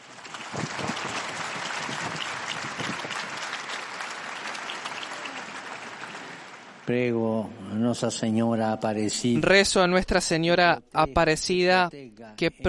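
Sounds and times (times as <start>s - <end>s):
large crowd applauding: 0.0s - 6.9s
speech: 6.9s - 12.6s.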